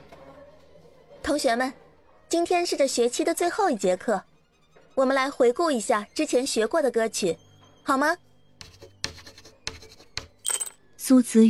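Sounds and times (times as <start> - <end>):
speech: 1.3 - 4.3, 5.0 - 8.3, 11.1 - 11.4
chalk scratching on blackboard: 8.6 - 10.4.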